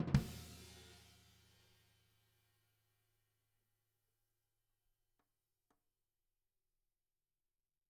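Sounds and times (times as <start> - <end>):
snare drum: 0.1 - 1.9.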